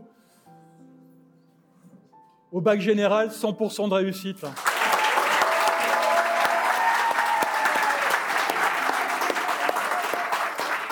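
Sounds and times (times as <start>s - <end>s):
speech: 2.5s - 4.7s
audience applause: 4.6s - 10.9s.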